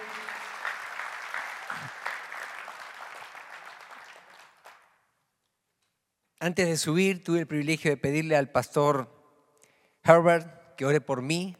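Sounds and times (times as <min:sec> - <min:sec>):
loud audience applause: 0:00.0 - 0:04.9
speech: 0:06.4 - 0:09.2, 0:10.1 - 0:11.5.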